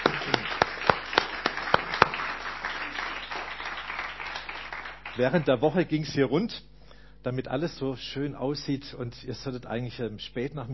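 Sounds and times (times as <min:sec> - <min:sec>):
crowd rustling: 0:00.0 - 0:04.5
audience clapping in rhythm: 0:00.0 - 0:05.8
speech: 0:05.2 - 0:10.7.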